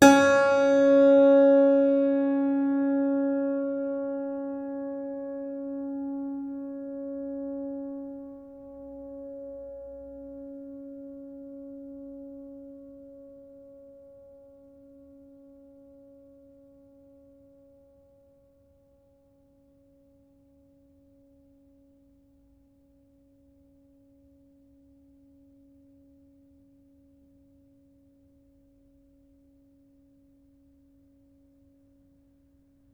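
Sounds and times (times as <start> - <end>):
string pluck pad: 0.0 - 14.2.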